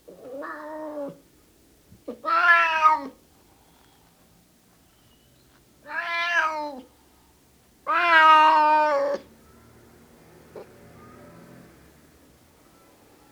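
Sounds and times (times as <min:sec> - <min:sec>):
male cat meowing: 0:00.2 - 0:01.2, 0:02.1 - 0:03.2, 0:05.8 - 0:06.9, 0:07.8 - 0:09.3.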